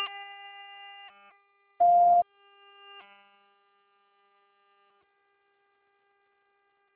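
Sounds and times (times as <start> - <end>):
answering machine beep tone: 1.8 - 2.2.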